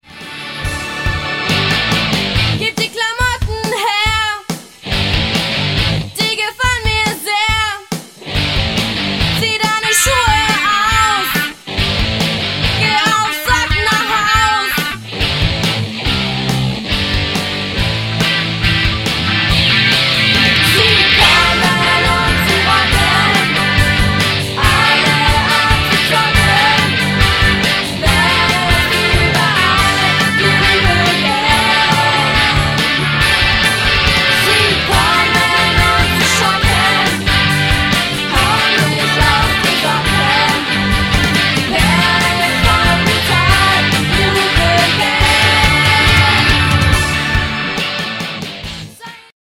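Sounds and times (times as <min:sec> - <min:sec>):
rock music: 0:00.0 - 0:49.3.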